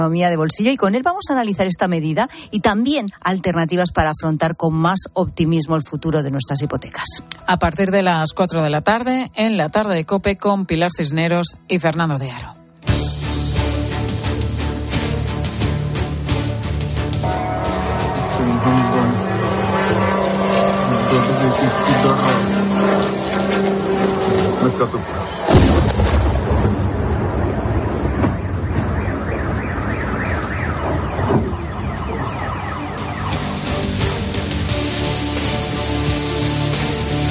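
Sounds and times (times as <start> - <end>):
speech: 0.0 - 13.0, 24.6 - 26.2
Iranian-made drone engines: 12.9 - 37.2
explosions: 25.4 - 32.4.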